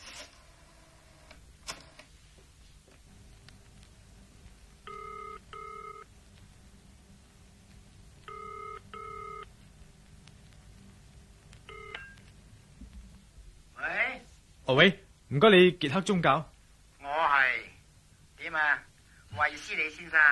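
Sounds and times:
faint hiss: 0.0 - 20.3
telephone number being dialed: 4.9 - 6.1, 8.3 - 9.5, 11.7 - 12.3
speech: 14.7 - 16.5, 19.6 - 20.3.

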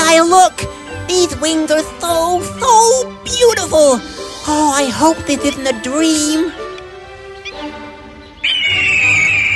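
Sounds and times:
speech: 0.2 - 6.6
eagle call: 8.3 - 9.5.

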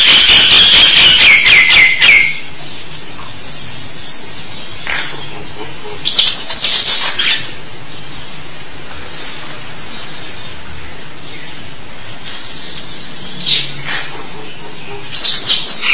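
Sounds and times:
starling singing whistles and chirps: 0.0 - 2.5, 3.4 - 8.2, 11.2 - 15.9.

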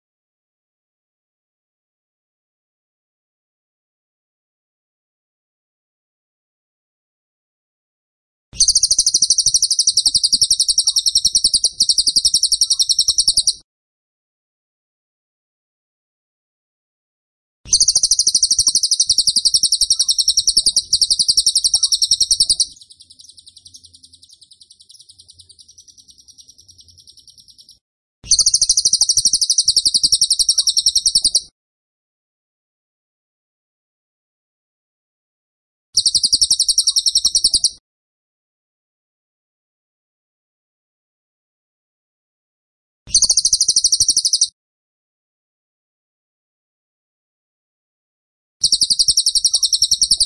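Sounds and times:
Tembakan bird trilling: 8.6 - 13.6, 17.7 - 31.5, 36.0 - 37.8, 43.1 - 44.5, 48.6 - 50.2.

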